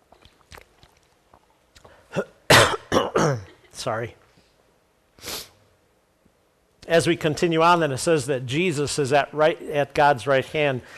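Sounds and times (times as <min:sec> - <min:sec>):
speech: 0:02.1 - 0:02.3, 0:03.8 - 0:04.2, 0:06.9 - 0:10.9
person clearing throat: 0:02.1 - 0:03.8.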